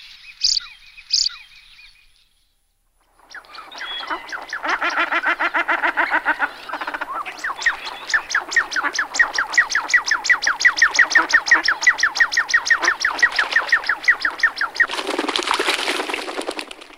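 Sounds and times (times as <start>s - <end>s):
common shelduck calling: 3.3s - 15.4s.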